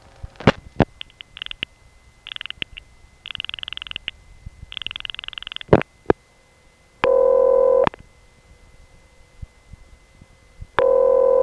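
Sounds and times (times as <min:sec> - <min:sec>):
short, rapidly repeating telephone ringback tone: 0:07.0 - 0:08.0, 0:10.8 - 0:11.4.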